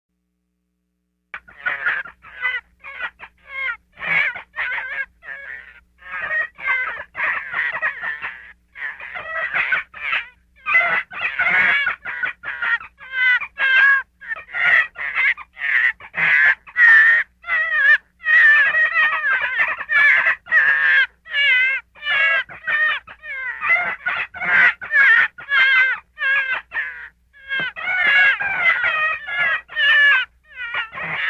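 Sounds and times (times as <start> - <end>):
gray fox yelping: 1.4 - 31.2.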